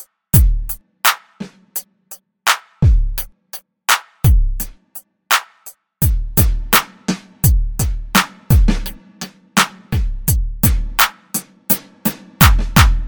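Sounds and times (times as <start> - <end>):
rap beat: 0.0 - 1.2, 2.8 - 3.6, 6.0 - 13.0.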